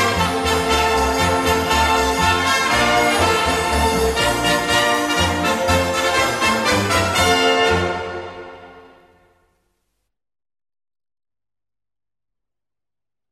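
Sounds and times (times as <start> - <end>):
orchestra playing: 0.0 - 9.2.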